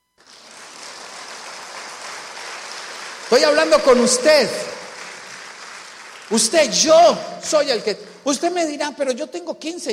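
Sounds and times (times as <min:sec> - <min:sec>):
audience applause: 0:00.2 - 0:07.1
speech: 0:03.3 - 0:04.7, 0:06.3 - 0:09.9.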